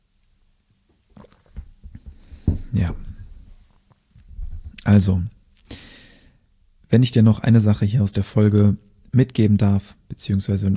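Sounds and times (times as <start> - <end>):
person swallowing a sip of a drink: 1.1 - 3.3
speech: 4.9 - 5.4, 6.9 - 10.7.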